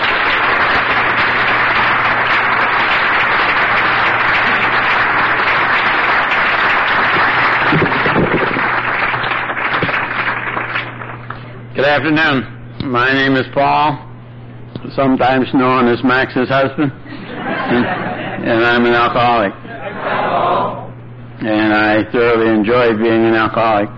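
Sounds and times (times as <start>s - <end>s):
audience applause welcoming a speaker: 0.0s - 11.4s
speech: 11.8s - 14.0s, 14.9s - 19.6s, 21.4s - 23.9s
laughter: 17.0s - 18.8s.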